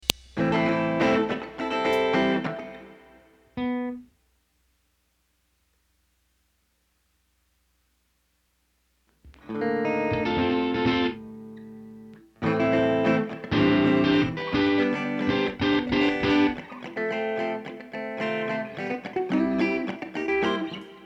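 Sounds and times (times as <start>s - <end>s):
ambient guitar: 0.4s - 4.1s, 9.3s - 21.0s.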